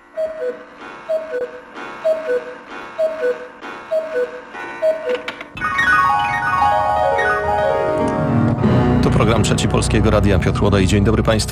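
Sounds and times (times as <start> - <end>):
clock ticking tones of an hourly time signal: 0.0 - 8.2
speech: 9.4 - 11.5.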